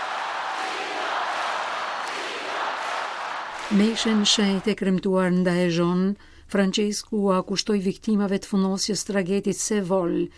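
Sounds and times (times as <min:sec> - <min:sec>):
huge crowd cheering to welcome Pope Francis in South Korea: 0:00.0 - 0:04.8
speech: 0:03.7 - 0:10.3.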